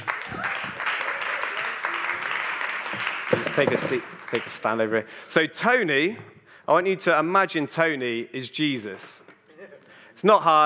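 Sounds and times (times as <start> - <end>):
applause: 0.0 - 4.8
speech: 3.3 - 9.2, 10.2 - 10.6.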